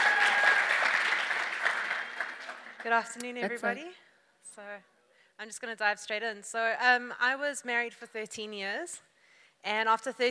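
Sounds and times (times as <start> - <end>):
audience round of applause: 0.0 - 2.9
speech: 2.8 - 4.0, 4.6 - 10.2.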